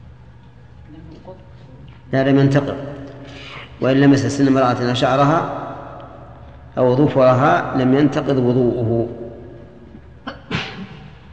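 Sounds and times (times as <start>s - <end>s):
speech: 0.9s - 5.6s, 6.8s - 9.2s
sneeze: 10.3s - 11.2s.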